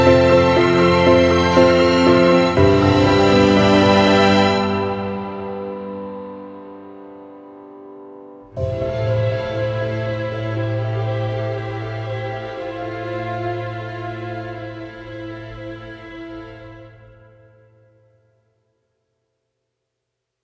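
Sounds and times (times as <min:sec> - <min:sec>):
orchestra: 0:00.0 - 0:06.8, 0:08.5 - 0:17.6.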